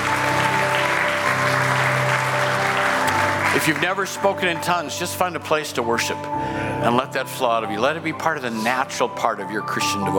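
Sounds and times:
audience clapping in praise: 0:00.0 - 0:04.8
speech: 0:03.6 - 0:10.1.

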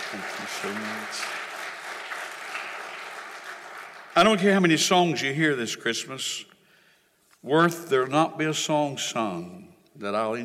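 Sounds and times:
hand clapping: 0:00.0 - 0:04.4
speech: 0:00.1 - 0:01.4, 0:04.2 - 0:06.5, 0:07.4 - 0:10.4.

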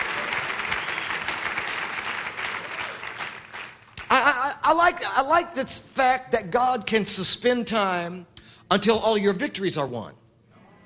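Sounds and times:
audience clapping hands: 0:00.0 - 0:04.3
speech: 0:04.7 - 0:10.2.

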